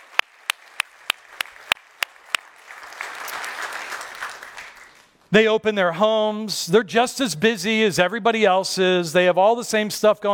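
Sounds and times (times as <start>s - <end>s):
audience applause: 0.0s - 5.1s
speech: 5.3s - 10.3s.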